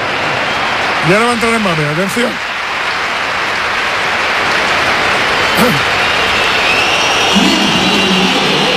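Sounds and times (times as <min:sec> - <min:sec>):
stadium crowd applause: 0:00.0 - 0:08.7
speech: 0:01.0 - 0:02.5, 0:05.6 - 0:05.9.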